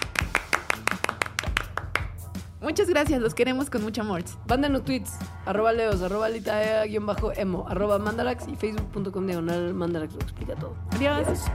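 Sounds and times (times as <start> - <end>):
audience applause: 0.0 - 2.0
speech: 2.6 - 11.5.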